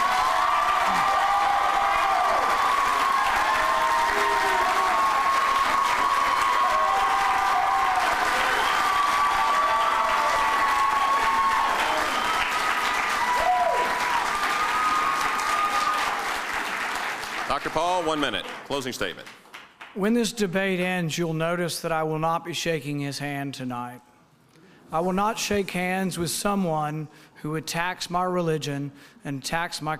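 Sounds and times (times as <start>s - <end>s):
crowd cheering and whooping: 0.0s - 16.5s
audience applause: 0.0s - 20.0s
speech: 18.0s - 24.1s, 24.9s - 29.9s.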